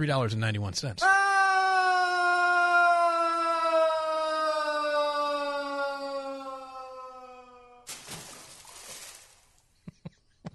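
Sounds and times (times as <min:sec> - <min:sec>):
speech: 0:00.0 - 0:01.3
long scream of someone falling down a well: 0:01.0 - 0:08.4
splash at the bottom of a well: 0:07.9 - 0:09.6
faint water drips: 0:07.9 - 0:09.7.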